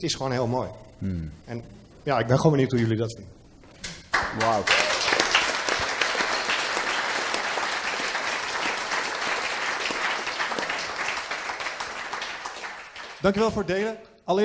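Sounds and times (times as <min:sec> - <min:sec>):
speech: 0:00.0 - 0:03.4, 0:04.4 - 0:05.0, 0:13.2 - 0:14.4
applause: 0:04.1 - 0:13.8.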